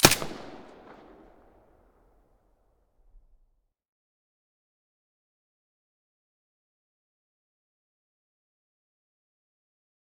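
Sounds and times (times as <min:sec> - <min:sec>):
MP5 submachine gun firing with silencer: 0:00.0 - 0:01.5.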